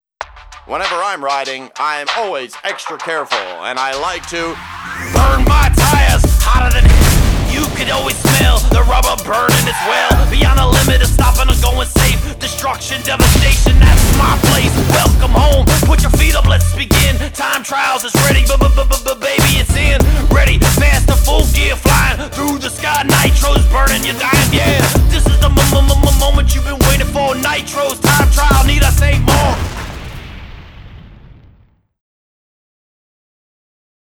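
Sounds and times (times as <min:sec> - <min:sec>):
loader rap music: 0:00.2 - 0:29.9.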